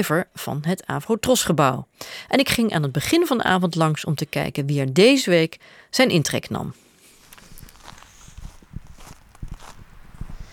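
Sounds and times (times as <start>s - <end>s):
speech: 0.0s - 6.8s
footsteps walking outdoors: 7.0s - 10.4s.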